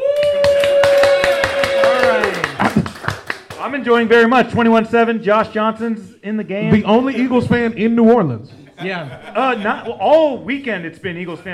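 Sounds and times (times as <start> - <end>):
audience clapping: 0.0 - 3.9
laughter: 2.3 - 3.2, 8.6 - 11.5
speech: 3.6 - 11.5.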